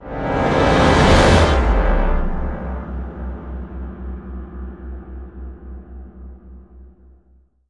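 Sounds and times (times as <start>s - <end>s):
horn sting: 0.0s - 5.1s.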